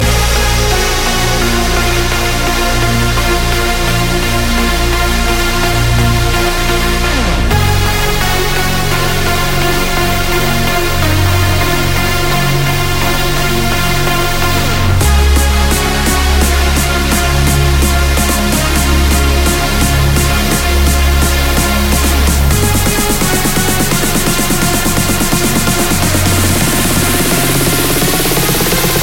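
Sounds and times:
trance music: 0.0s - 29.0s.

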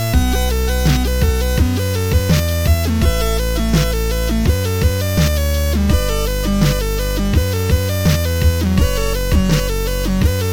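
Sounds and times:
8-bit tune: 0.1s - 2.4s, 3.0s - 10.4s.

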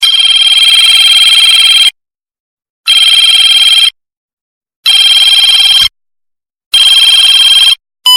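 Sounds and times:
telephone: 0.0s - 2.0s, 2.9s - 4.0s, 4.9s - 6.0s, 6.7s - 8.1s.

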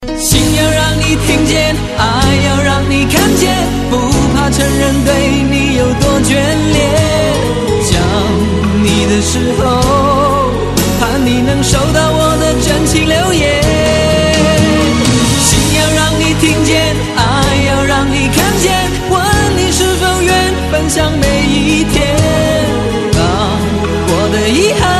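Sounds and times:
Chinese song: 0.0s - 24.9s.

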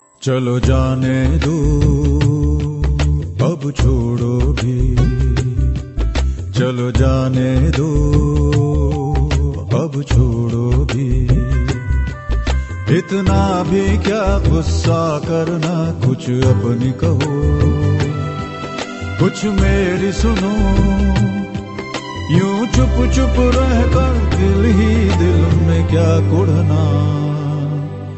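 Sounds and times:
man singing: 0.0s - 28.1s.

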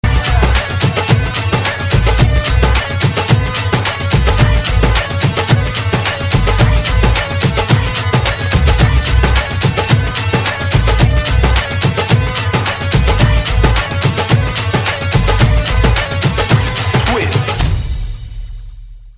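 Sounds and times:
twist tabla playing: 0.0s - 18.4s.

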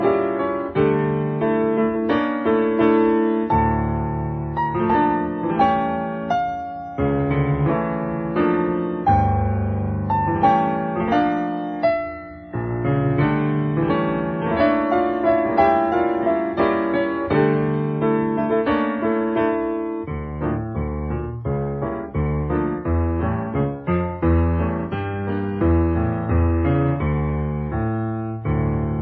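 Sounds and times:
Iranian classical piano music: 0.0s - 29.0s.

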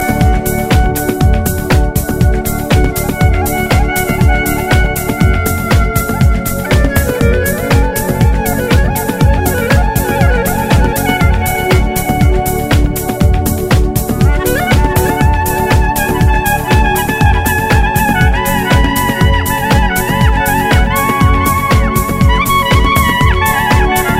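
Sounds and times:
Georgian flute: 0.0s - 24.1s.

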